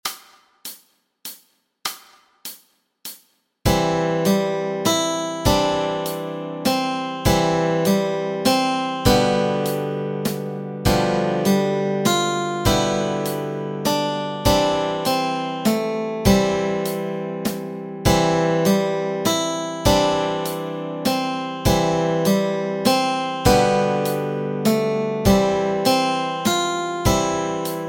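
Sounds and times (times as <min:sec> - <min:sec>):
lullaby melody with chords: 0:03.7 - 0:27.8.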